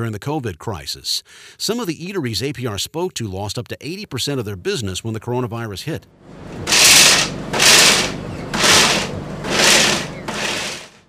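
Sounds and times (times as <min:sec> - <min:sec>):
speech: 0:00.0 - 0:07.8
blenders buzzing in a food truck: 0:06.5 - 0:11.0.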